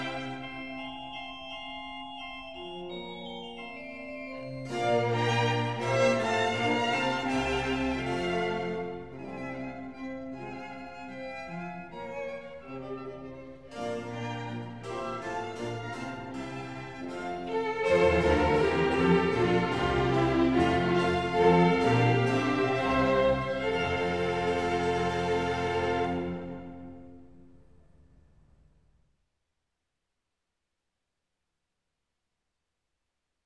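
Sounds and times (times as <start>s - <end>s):
four violins and cello playing a concerto: 0.0s - 0.8s, 4.6s - 27.2s.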